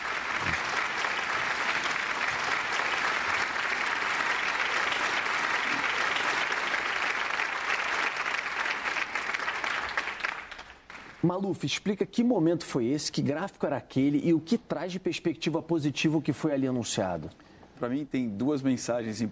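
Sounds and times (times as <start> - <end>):
doctors applauding at medical conference: 0.0 - 11.3
speech: 11.2 - 19.3.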